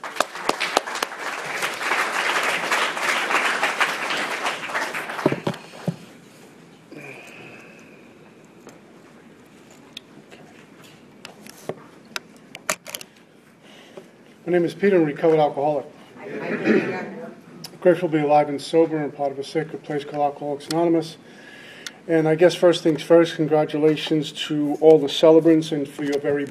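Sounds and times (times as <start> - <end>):
audience applause at an Alcoholics Anonymous gathering: 0.0 - 5.9
speech: 14.5 - 17.0, 17.8 - 21.4, 22.1 - 26.5
laughter: 16.2 - 17.4.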